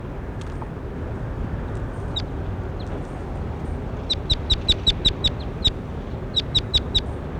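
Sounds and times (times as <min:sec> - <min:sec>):
low rumble: 0:00.1 - 0:07.3
bird chirping: 0:02.0 - 0:07.3.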